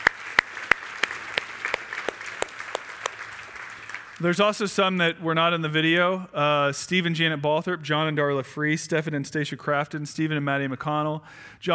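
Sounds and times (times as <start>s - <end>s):
sharp rhythmic claps: 0.0s - 4.2s
group applauding: 0.0s - 4.4s
speech: 4.2s - 11.7s.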